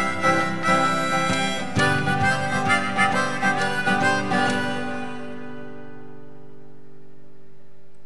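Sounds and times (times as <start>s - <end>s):
harmonica playing a shuffle rhythm: 0.0s - 6.3s.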